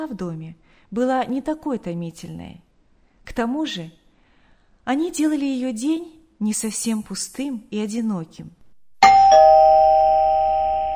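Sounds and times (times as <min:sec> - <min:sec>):
speech: 0:00.0 - 0:04.0, 0:04.8 - 0:09.2
home doorbell two-note chime: 0:09.0 - 0:10.9.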